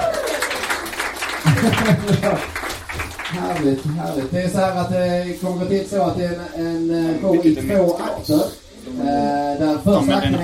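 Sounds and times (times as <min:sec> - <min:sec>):
audience applause: 0:00.0 - 0:04.4
speech: 0:01.4 - 0:02.6, 0:03.3 - 0:10.4.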